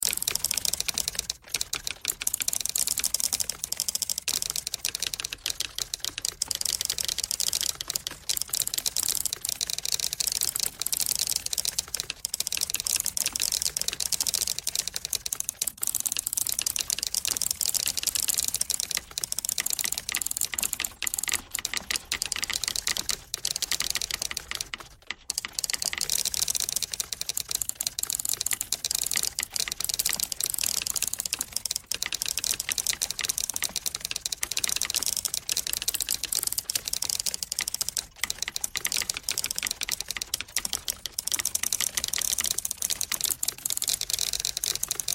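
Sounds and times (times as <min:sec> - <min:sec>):
typewriter: 0:00.0 - 0:45.1.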